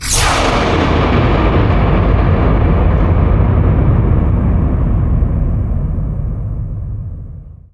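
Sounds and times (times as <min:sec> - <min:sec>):
thunder: 0:00.0 - 0:07.7.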